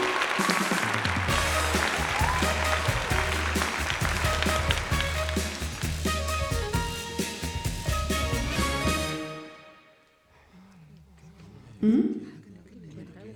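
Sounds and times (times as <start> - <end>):
audience clapping to welcome an animal guest onto the stage: 0.0 - 9.4.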